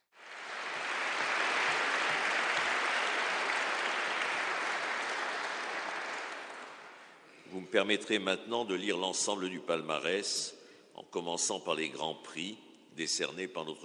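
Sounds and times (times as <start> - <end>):
large crowd applauding: 0.1 - 7.2
speech: 7.6 - 13.8.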